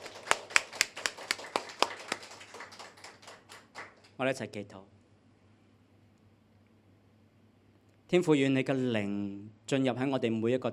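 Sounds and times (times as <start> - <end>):
audience clapping: 0.0 - 4.2
speech: 4.2 - 5.0, 8.1 - 10.7.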